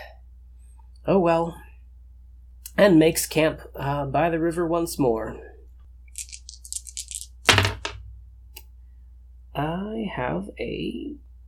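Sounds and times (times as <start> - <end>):
speech: 1.0 - 1.6, 2.8 - 5.5, 9.6 - 11.3
dice rolling: 6.1 - 8.0.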